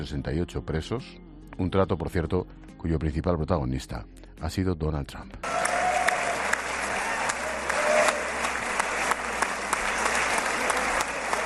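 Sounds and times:
speech: 0.0 - 5.6
Israeli parliament applauding: 5.4 - 11.4.

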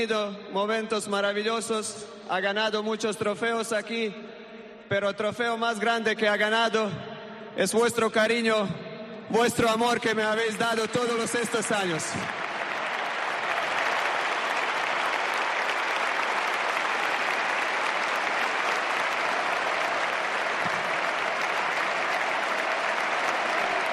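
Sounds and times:
speech: 0.0 - 4.3, 4.9 - 12.4
stadium crowd applauding Modric in tribute: 10.3 - 23.9.

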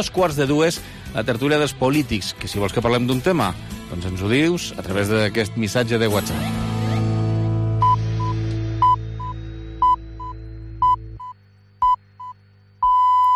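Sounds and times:
speech: 0.0 - 6.7
radio hourly time signal beeps: 7.8 - 13.3.

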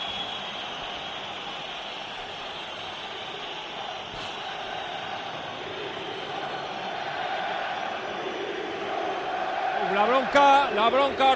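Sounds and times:
stadium crowd jeering: 0.0 - 11.3
crowd protest chants: 4.6 - 11.3.

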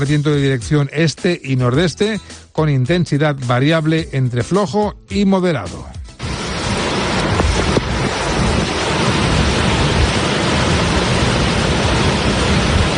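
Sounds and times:
speech: 0.0 - 6.0
swollen Clariano river roaring: 6.2 - 12.9.

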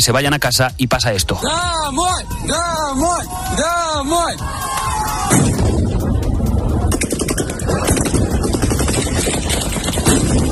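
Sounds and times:
speech: 0.0 - 5.7
gunfire at civilians in a square: 6.9 - 10.5.

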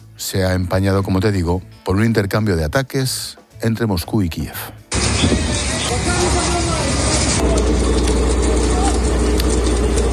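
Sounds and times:
speech: 0.2 - 6.2
deep continuous engine rumble: 4.9 - 10.1
firefighters spraying water on a building blaze: 4.9 - 10.1.

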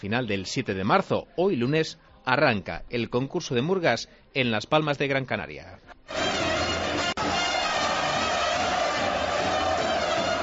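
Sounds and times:
speech: 0.0 - 6.4
basketball fan club crowd cheering at the Copa del Rey in Gran Canaria: 6.1 - 10.4.

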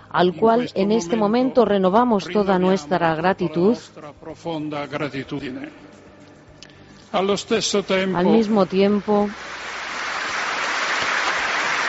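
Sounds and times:
speech: 0.1 - 6.0, 7.1 - 9.6
applause in St. Peter's Basilica: 9.2 - 11.8.

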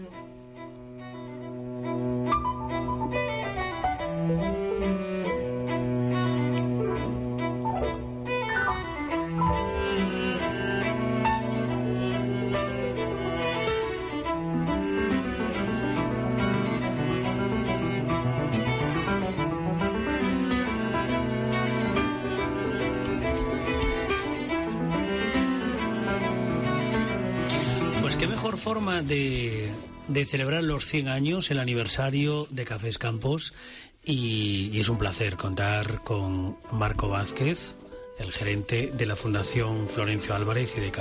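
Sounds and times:
string quintet playing slow bowed chamber music with cello and violins: 0.0 - 30.9, 34.2 - 40.9
speech: 28.8 - 40.9.

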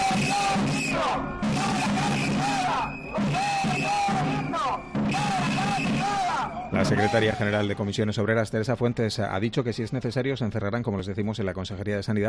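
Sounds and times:
crowd of union workers chanting at a protest: 0.0 - 7.7
speech: 6.8 - 12.2.

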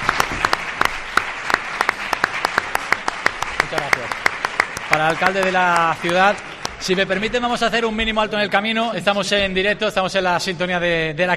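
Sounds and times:
audience applause: 0.0 - 8.8
speech: 3.7 - 4.3, 4.9 - 11.3.

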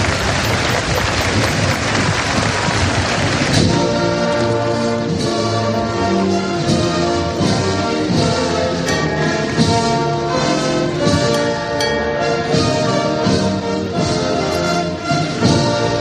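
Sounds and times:
crowd applause at Holy Week street procession: 0.0 - 4.6
band playing slow march in Holy Week street procession: 0.0 - 15.9.

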